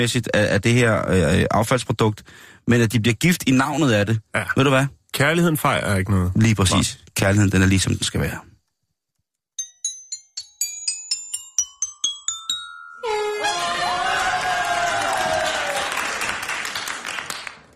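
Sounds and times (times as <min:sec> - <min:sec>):
speech: 0:00.0 - 0:08.5
crowd cheering: 0:13.0 - 0:17.7.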